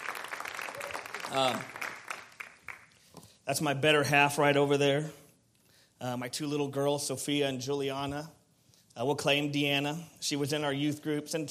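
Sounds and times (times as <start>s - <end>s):
audience applause: 0.0s - 3.0s
speech: 1.3s - 1.8s, 3.5s - 5.2s, 6.0s - 8.4s, 9.0s - 11.4s.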